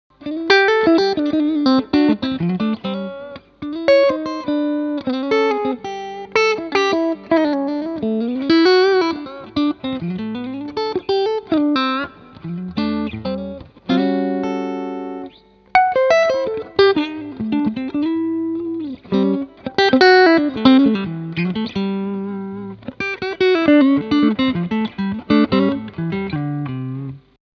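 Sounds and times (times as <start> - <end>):
clean electric guitar through Fender Hot Rod IV Deluxe, neck and middle pickups: 0.2 - 27.4.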